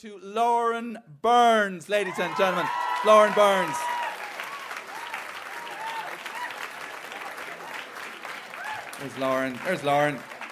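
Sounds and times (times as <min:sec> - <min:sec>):
speech: 0:00.0 - 0:03.9, 0:09.0 - 0:10.3
faint cheers and voices: 0:02.0 - 0:07.8
audience applause for comedian: 0:02.1 - 0:10.5.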